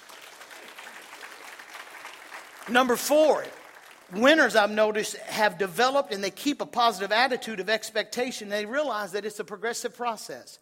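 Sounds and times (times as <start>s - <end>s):
congregation clapping during a worship service: 0.0s - 5.1s
speech: 2.7s - 10.5s.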